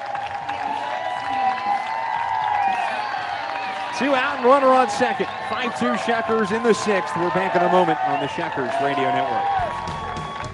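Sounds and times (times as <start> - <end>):
ballpark crowd applause: 0.0 - 10.5
speech: 4.0 - 10.0.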